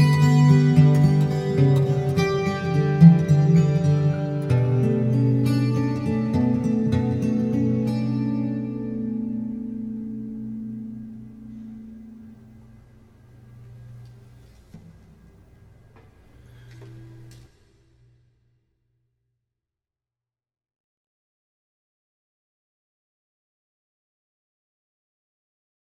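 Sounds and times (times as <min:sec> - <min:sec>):
acoustic etude: 0:00.0 - 0:14.6.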